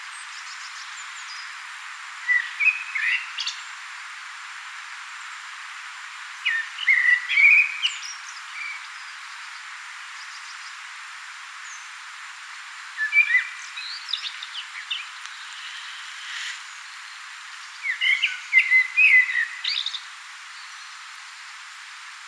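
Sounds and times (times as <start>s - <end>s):
hiss: 0.0s - 22.2s
common blackbird singing: 0.1s - 1.6s, 2.2s - 3.8s, 6.4s - 10.8s, 12.9s - 21.5s.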